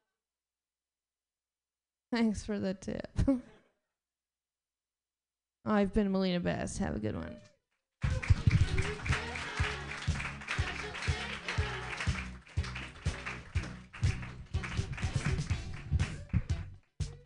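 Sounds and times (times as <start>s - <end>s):
speech: 2.1s - 3.5s, 5.6s - 7.5s
audience clapping: 8.0s - 17.2s.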